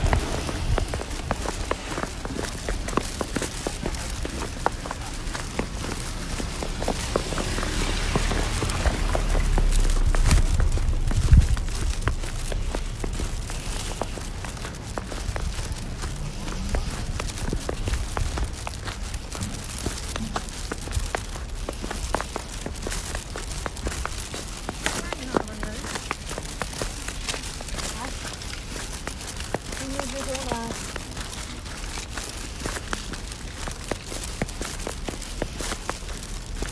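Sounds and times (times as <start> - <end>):
footsteps crunching through snow in Beijing: 0.0 - 36.6
low rumble: 5.0 - 22.6.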